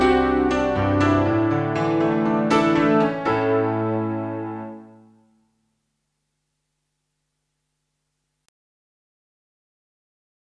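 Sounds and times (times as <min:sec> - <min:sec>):
piano version: 0:00.0 - 0:05.6.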